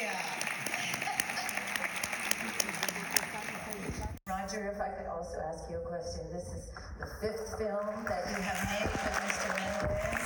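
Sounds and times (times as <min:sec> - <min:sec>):
audience applause: 0:00.0 - 0:04.2, 0:08.3 - 0:10.2
speech: 0:04.5 - 0:10.2.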